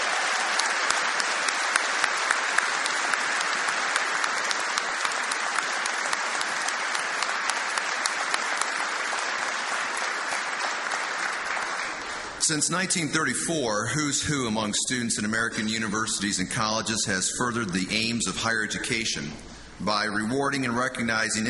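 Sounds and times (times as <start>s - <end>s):
audience applause: 0.0s - 12.4s
speech: 12.5s - 21.4s.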